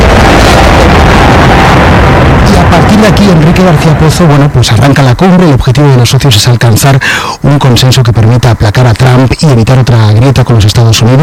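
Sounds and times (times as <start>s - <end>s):
airplane landing roar: 0.0s - 5.8s
speech: 3.0s - 11.2s.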